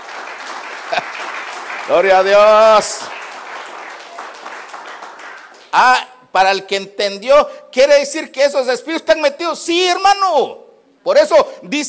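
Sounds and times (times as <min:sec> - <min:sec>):
audience clapping: 0:00.0 - 0:06.1
laughter: 0:00.8 - 0:01.3
speech: 0:01.9 - 0:03.2, 0:05.7 - 0:11.8.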